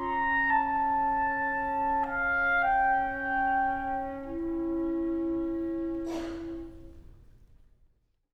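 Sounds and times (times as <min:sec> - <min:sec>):
duos for flute and clarinet: 0:00.0 - 0:07.0.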